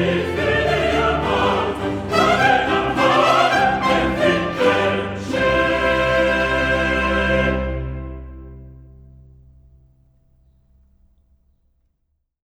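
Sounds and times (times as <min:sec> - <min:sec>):
full choir: 0:00.0 - 0:08.7.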